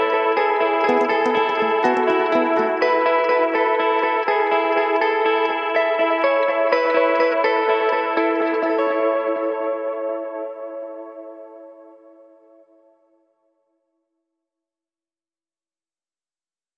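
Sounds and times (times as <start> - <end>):
electric guitars: 0.0 - 12.6.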